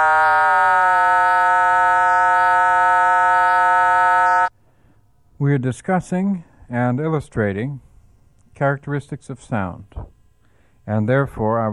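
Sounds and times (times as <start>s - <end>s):
oscillator combination tones: 0.0s - 4.5s
speech: 5.4s - 7.9s, 8.6s - 10.1s, 10.9s - 11.7s.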